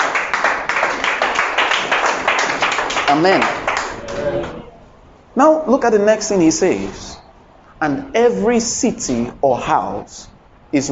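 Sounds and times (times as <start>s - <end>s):
crowd clapping: 0.0s - 4.6s
speech: 3.1s - 3.6s, 5.4s - 7.2s, 7.8s - 10.9s.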